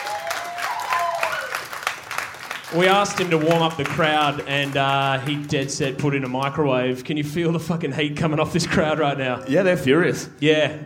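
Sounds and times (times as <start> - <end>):
audience applause: 0.0 - 6.6
speech: 2.7 - 10.8.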